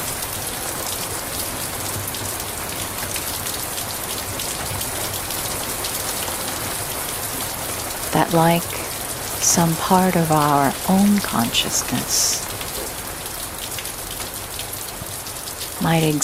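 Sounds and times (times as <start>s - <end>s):
heavy storm rain: 0.0s - 16.2s
speech: 8.1s - 8.8s, 9.4s - 12.4s, 15.8s - 16.2s.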